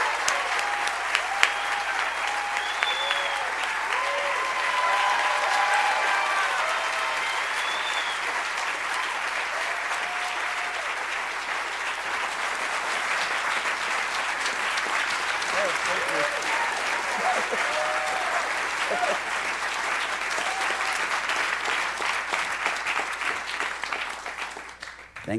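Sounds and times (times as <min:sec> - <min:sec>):
audience applause welcoming a performer at a World Cafe live show: 0:00.0 - 0:25.3
audience whistles: 0:01.3 - 0:03.5, 0:07.1 - 0:08.4
laughter: 0:15.3 - 0:19.4.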